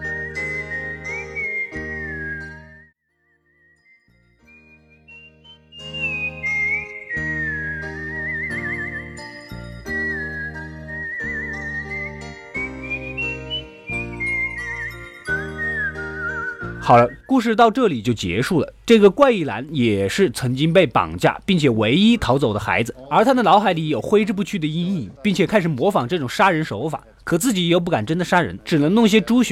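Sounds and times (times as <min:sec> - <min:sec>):
whistling carried on cold wind: 0:00.0 - 0:17.6
speech: 0:16.9 - 0:29.4.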